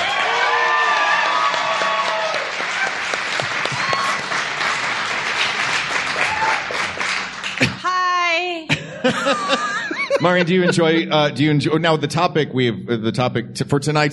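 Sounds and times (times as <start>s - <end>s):
crowd applauding: 0.0s - 8.0s
laughter: 8.7s - 11.8s
speech: 10.2s - 14.1s.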